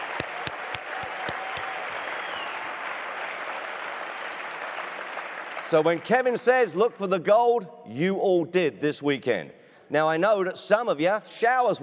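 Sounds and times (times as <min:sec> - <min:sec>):
audience applause: 0:00.0 - 0:06.2
speech: 0:05.7 - 0:11.8.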